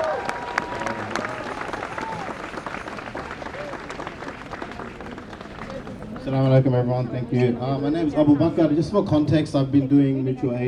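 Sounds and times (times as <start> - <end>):
audience applause: 0.0 - 6.5
speech: 6.3 - 10.6.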